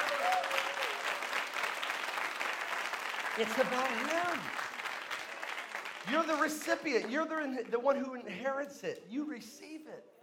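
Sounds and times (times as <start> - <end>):
audience hand clapping: 0.0 - 7.9
speech: 3.4 - 4.7, 6.0 - 10.2.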